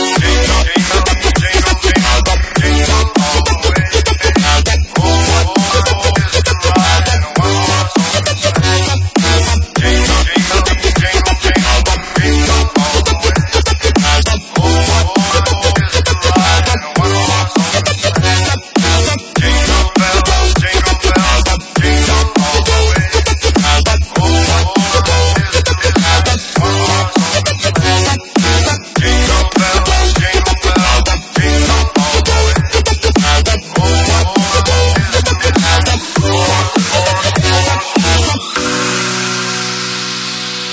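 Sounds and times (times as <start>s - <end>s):
dubstep music: 0.0s - 40.7s.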